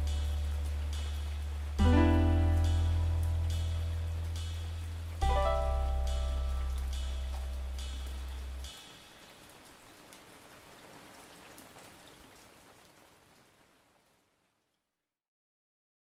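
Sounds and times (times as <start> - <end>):
lofi remix music: 0.0 - 8.7.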